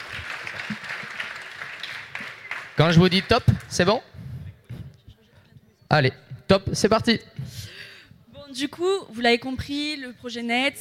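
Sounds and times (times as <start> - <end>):
audience applause for presenters at a startup pitch competition: 0.0 - 3.8
speech: 2.8 - 4.1, 6.0 - 7.6, 8.5 - 10.7.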